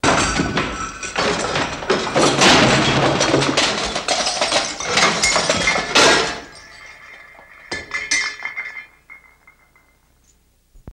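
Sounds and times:
debris falling out close in a ransacked room: 0:00.0 - 0:10.1.

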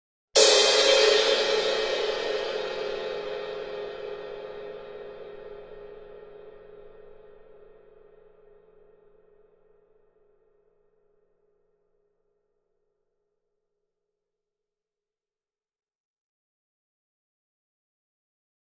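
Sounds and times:
large cymbal single hit: 0:00.4 - 0:08.7.

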